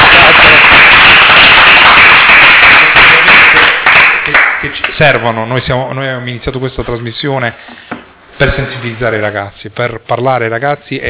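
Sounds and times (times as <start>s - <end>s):
crowd applause: 0.0s - 4.8s
speech: 5.0s - 7.8s, 8.4s - 11.0s.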